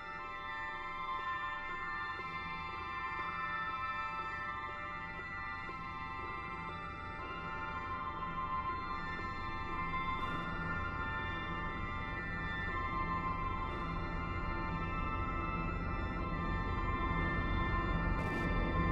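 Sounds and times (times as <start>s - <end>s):
A4 solo drone: 0.1s - 18.8s.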